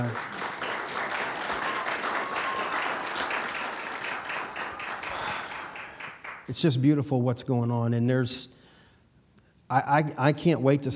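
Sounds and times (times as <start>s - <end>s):
audience applause: 0.0s - 6.5s
speech: 6.5s - 8.5s, 9.7s - 10.9s.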